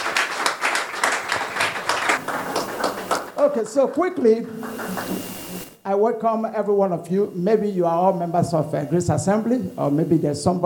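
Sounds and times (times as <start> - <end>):
church congregation applauding in a standing ovation: 0.0 - 5.4
speech: 3.5 - 10.6.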